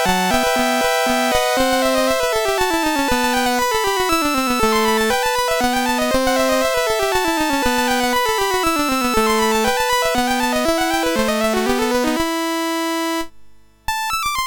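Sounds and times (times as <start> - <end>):
sonata played on a MOS6581R3 SID chip: 0.0 - 13.3, 13.9 - 14.4.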